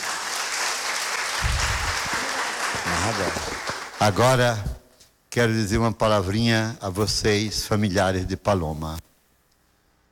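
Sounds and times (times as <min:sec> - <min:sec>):
church audience applauding: 0:00.0 - 0:04.4
low rumble of movement and voices: 0:01.4 - 0:03.7
speech: 0:03.0 - 0:04.7, 0:05.3 - 0:09.1.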